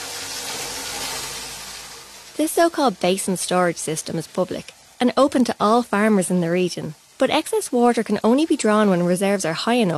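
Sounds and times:
large automatic irrigation machine spraying water from a hose onto field: 0:00.0 - 0:03.3
speech: 0:02.4 - 0:09.9.

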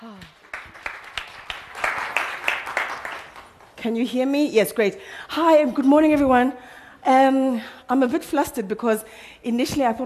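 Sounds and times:
audience applause welcoming a speaker at a conference talk on brand building: 0:00.0 - 0:03.8
speech: 0:03.8 - 0:10.0.

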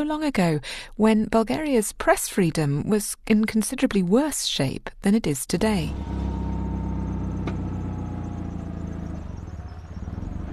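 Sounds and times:
speech: 0:00.0 - 0:06.4
car driving up to a parking lot on the outskirts of Sofia: 0:05.8 - 0:10.5.

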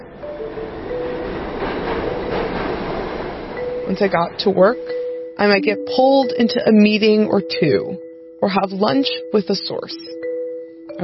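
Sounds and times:
commuter train ride into Manhattan: 0:00.0 - 0:06.4
speech: 0:03.9 - 0:10.2.

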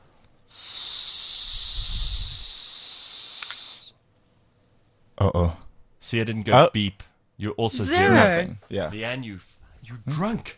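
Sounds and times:
breath blown into a breathalyzer: 0:00.5 - 0:03.9
speech: 0:05.2 - 0:10.5.

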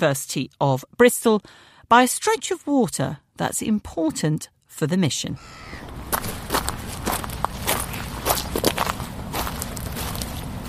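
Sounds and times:
speech: 0:00.0 - 0:06.0
footsteps walking over seaweed and stones: 0:06.0 - 0:10.6.

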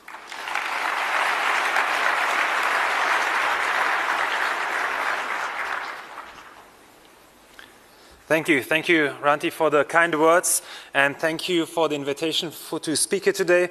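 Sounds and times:
audience applause: 0:00.0 - 0:06.8
speech: 0:08.3 - 0:13.6.

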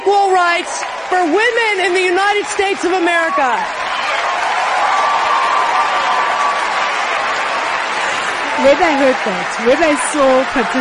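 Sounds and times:
whole room applauding: 0:00.0 - 0:10.7
speech: 0:00.6 - 0:03.8, 0:08.6 - 0:10.7
faint murmur of cheering: 0:02.4 - 0:10.7.

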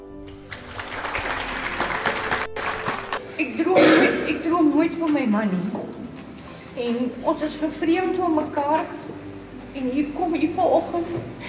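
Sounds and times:
audience applause: 0:00.4 - 0:03.2
speech: 0:03.6 - 0:04.2, 0:04.8 - 0:06.0, 0:06.8 - 0:09.0, 0:09.8 - 0:11.4.

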